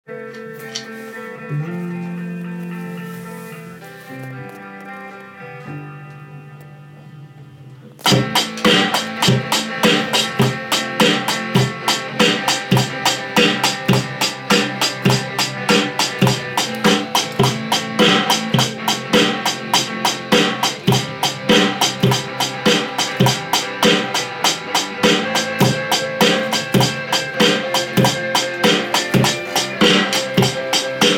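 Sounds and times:
four-four rock drum beat: 8.0s - 31.1s.

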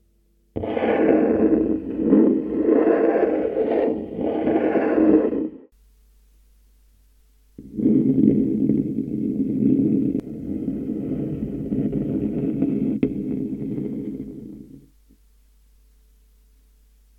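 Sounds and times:
scratching on a table: 0.6s - 5.7s, 7.6s - 14.9s.

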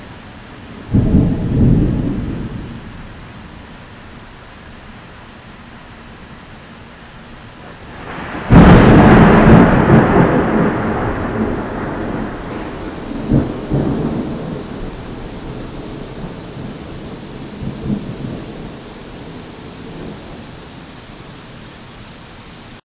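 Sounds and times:
powerful Florida thunderstorm: 0.7s - 3.7s, 7.6s - 21.2s.

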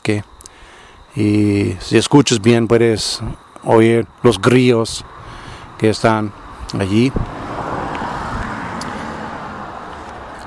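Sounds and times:
speech: 0.1s - 0.3s, 1.2s - 5.2s, 5.8s - 7.4s
cars passing on a nearby road: 5.0s - 10.4s.

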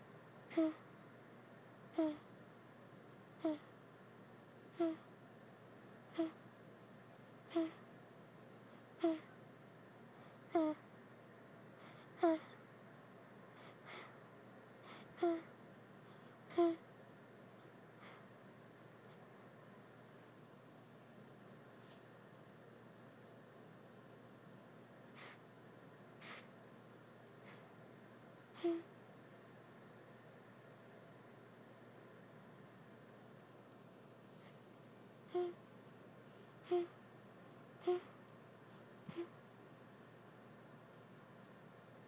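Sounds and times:
baby making satisfied cooing sounds after feeding: 0.5s - 0.8s, 2.0s - 2.2s, 3.4s - 3.7s, 4.8s - 5.0s, 6.2s - 6.4s, 7.5s - 7.8s, 9.0s - 9.3s, 10.5s - 10.8s, 12.2s - 12.6s, 15.2s - 15.4s, 16.5s - 16.8s, 28.6s - 28.9s, 35.3s - 35.6s, 36.7s - 36.9s, 37.8s - 38.1s, 39.1s - 39.3s.

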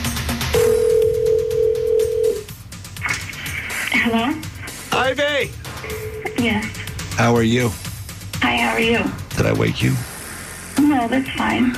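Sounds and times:
telephone dial tone placing a call: 0.6s - 2.4s
speech: 4.1s - 4.5s, 5.1s - 7.8s, 8.4s - 10.1s, 10.8s - 11.7s.

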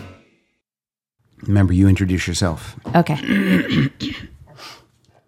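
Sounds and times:
speech: 1.5s - 4.3s
person burping: 3.1s - 4.3s.

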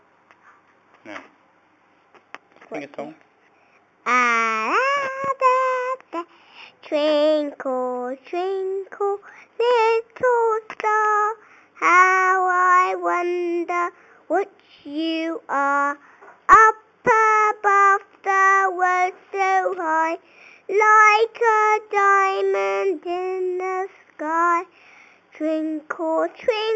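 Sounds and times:
person singing nursery rhyme: 4.0s - 26.7s.

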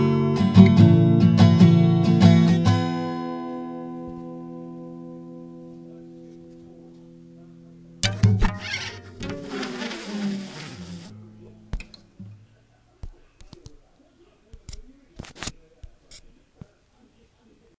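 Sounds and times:
acoustic guitar: 0.0s - 13.1s.

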